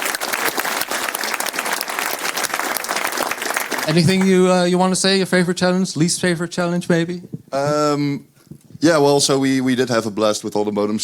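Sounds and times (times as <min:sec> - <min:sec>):
audience applause: 0:00.0 - 0:04.8
speech: 0:03.9 - 0:11.0.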